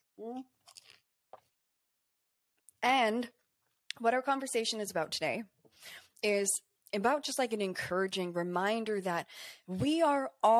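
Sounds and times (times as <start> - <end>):
person sipping water: 0.6 - 1.4
speech: 2.8 - 3.4, 4.0 - 10.5.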